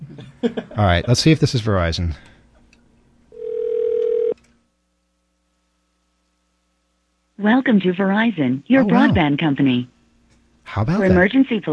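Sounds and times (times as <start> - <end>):
laughter: 0.1 - 1.4
speech: 0.4 - 2.3, 7.4 - 9.9, 10.7 - 11.7
telephone dialing: 3.4 - 4.4.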